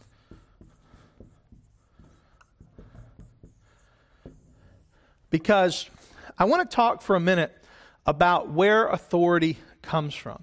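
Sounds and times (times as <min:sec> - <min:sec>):
scratchy strokes of writing the word authority on a board: 0:00.0 - 0:06.1
speech: 0:05.3 - 0:10.4.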